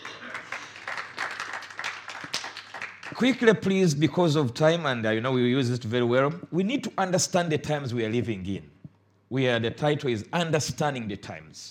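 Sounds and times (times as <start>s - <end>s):
audience clapping: 0.0s - 3.6s
speech: 3.2s - 8.7s, 9.3s - 11.6s.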